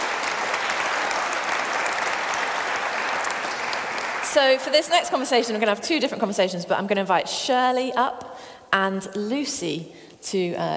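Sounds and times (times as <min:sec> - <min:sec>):
audience applause: 0:00.0 - 0:04.8
speech: 0:04.4 - 0:10.7.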